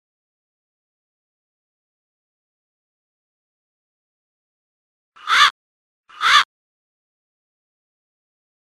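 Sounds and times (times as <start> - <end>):
reversed crow call: 5.2 - 6.5.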